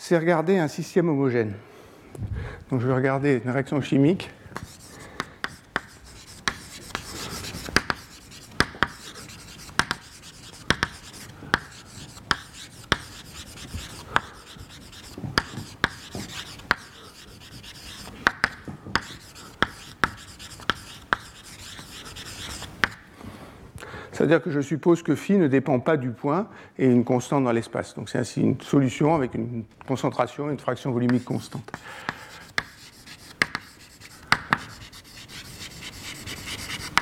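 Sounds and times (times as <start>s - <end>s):
speech: 0.1s - 4.7s, 24.3s - 32.2s
writing on a board during a chemistry lecture: 4.6s - 23.0s, 31.0s - 37.0s.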